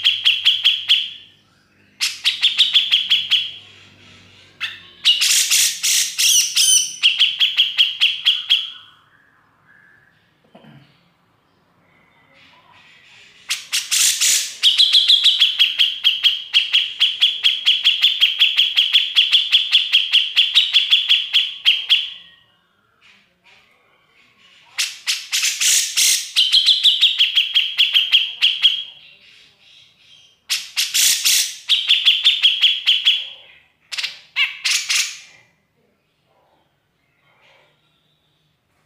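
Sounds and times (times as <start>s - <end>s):
grey-cheeked bulbul chattering: 0.0s - 8.9s, 12.3s - 22.2s, 24.4s - 33.2s.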